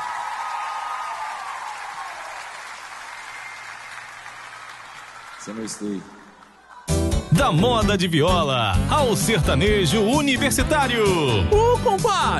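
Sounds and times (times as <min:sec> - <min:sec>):
audience clapping for a performer at a show: 0:00.0 - 0:06.9
speech: 0:05.4 - 0:06.2, 0:07.3 - 0:12.3.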